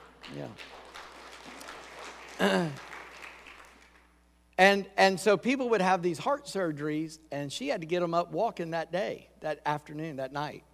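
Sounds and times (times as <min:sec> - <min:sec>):
audience applauding: 0:00.0 - 0:04.1
speech: 0:00.3 - 0:00.8, 0:02.4 - 0:02.9, 0:04.6 - 0:10.7.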